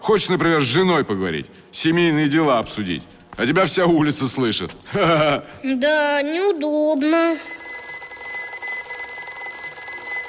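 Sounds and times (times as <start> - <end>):
speech: 0.0 - 7.6
telephone ringing: 7.3 - 10.2.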